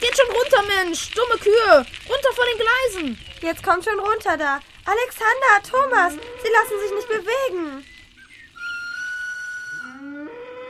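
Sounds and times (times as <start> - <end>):
speech: 0.7 - 7.9
train horn as train departs: 5.9 - 7.4, 9.4 - 10.6.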